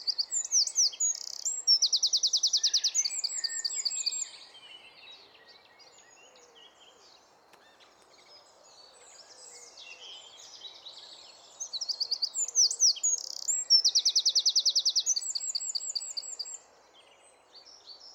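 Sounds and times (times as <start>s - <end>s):
Eurasian wren Troglodytes troglodytes singing: 0.0s - 4.2s, 11.7s - 16.4s.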